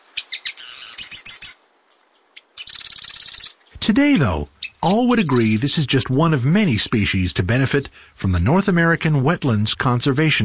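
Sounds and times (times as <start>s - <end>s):
Marsh Wren song: 0.0s - 6.0s
speech: 3.8s - 10.4s.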